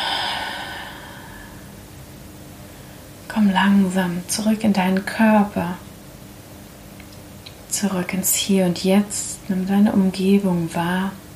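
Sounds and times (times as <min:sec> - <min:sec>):
deep breath in through the nose and out through the mouth: 0:00.0 - 0:01.7
speech: 0:03.3 - 0:05.9, 0:07.8 - 0:11.2.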